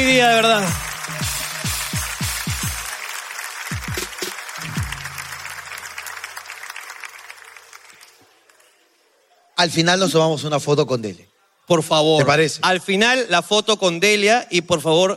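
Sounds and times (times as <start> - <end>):
audience applause: 0.0 - 9.0
speech: 0.1 - 1.4, 9.6 - 15.1.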